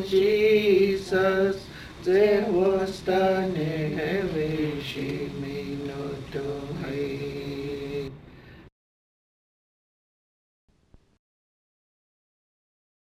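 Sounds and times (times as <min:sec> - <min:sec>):
hymn singing from a hymnbook: 0:00.0 - 0:08.4.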